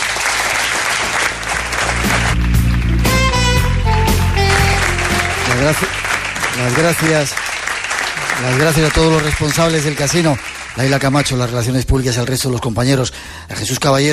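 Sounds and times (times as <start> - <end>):
audience applause: 0.0 - 3.1, 4.1 - 11.7
speech: 5.6 - 7.4, 8.4 - 14.1.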